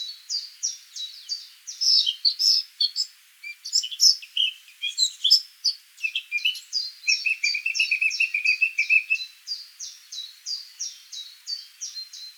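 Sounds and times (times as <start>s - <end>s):
Eurasian blackcap song, Sylvia atricapilla: 0.0s - 12.3s.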